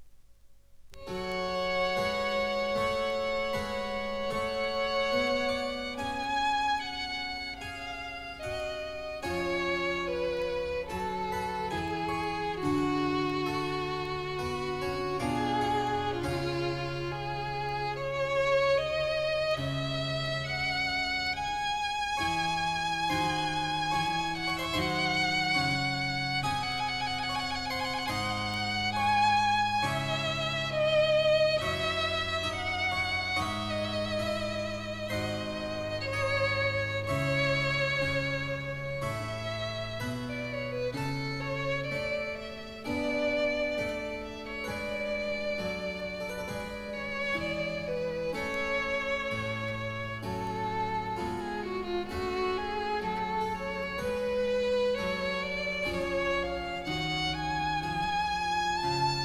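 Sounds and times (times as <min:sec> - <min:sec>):
baroque violin sonata: 0:00.8 - 0:59.2.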